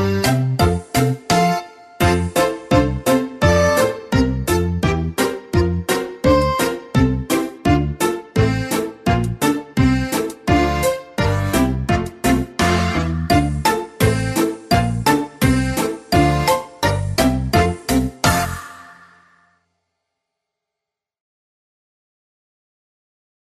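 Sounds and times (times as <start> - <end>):
Belarusian folk melody: 0.0 - 18.6.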